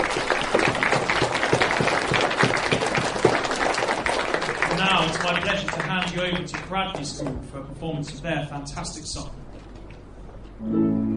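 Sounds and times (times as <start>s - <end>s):
audience applause at a school event honouring visiting poets: 0.0s - 7.1s
speech: 5.3s - 9.4s, 10.6s - 10.8s.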